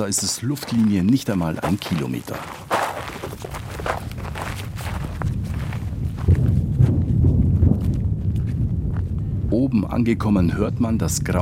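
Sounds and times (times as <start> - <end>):
speech: 0.0 - 4.2, 9.5 - 11.3
footsteps marching through thorny brush: 0.0 - 9.1.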